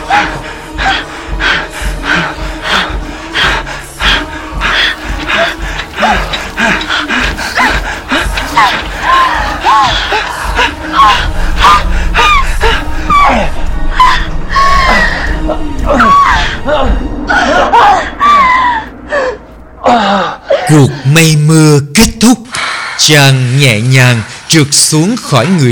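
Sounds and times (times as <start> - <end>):
heavy panting: 0.0 - 15.2
moaning: 0.0 - 21.4
speech: 23.1 - 25.7.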